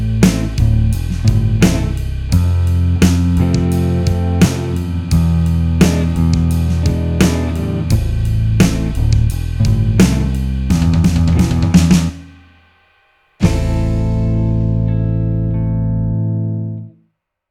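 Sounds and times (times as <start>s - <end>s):
pentatonic instrumental music: 0.0s - 17.0s.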